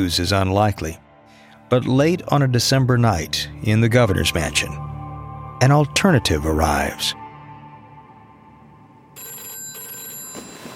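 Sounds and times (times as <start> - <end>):
speech: 0.0 - 1.0, 1.7 - 4.8, 5.6 - 7.2
telephone ringing at night: 9.2 - 10.7.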